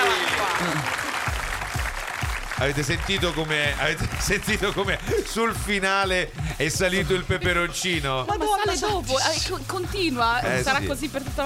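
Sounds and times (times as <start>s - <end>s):
audience applause: 0.0s - 6.2s
speech: 2.6s - 11.4s.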